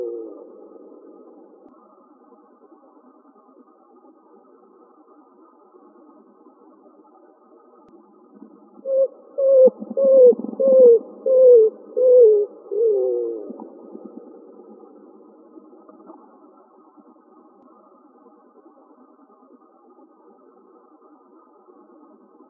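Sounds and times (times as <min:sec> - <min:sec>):
greater roadrunner cooing in Arizona United States: 0:08.9 - 0:13.5.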